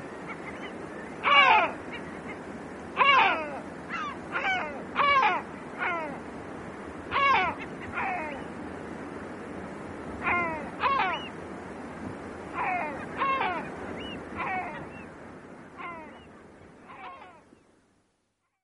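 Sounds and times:
great black-backed gull giving hoarse mewing calls: 0.0 - 6.3, 7.0 - 8.5, 10.2 - 11.4, 12.5 - 17.5.

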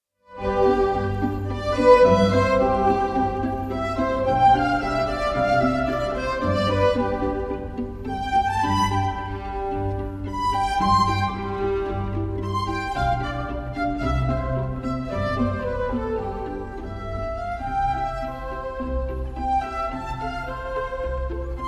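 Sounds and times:
string ensemble playing a quartet for strings: 0.3 - 21.6.

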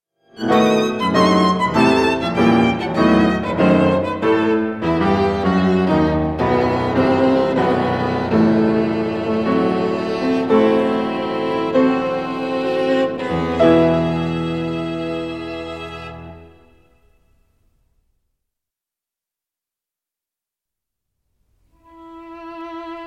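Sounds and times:
sonata in E minor for violin and piano: 0.2 - 17.0, 21.7 - 23.0.

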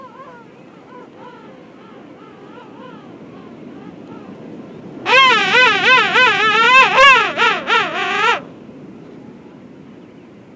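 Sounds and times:
king penguin trumpeting call: 5.1 - 8.4.

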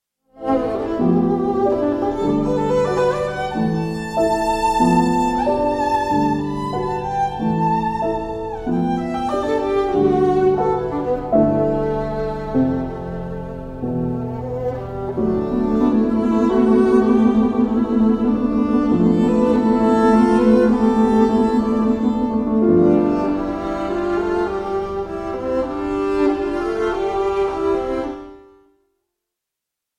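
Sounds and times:
violin: 0.3 - 28.7
piano: 0.3 - 28.9.

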